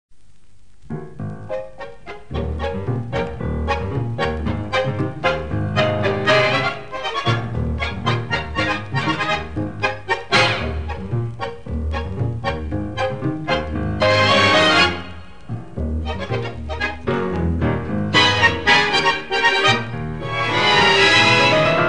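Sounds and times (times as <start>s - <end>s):
instrumental music: 0.8s - 21.8s.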